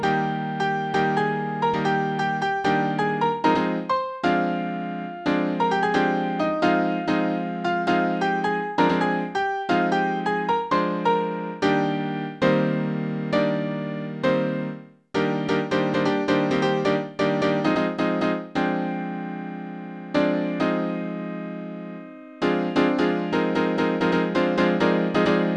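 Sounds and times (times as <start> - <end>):
piano dance piece: 0.0 - 25.5.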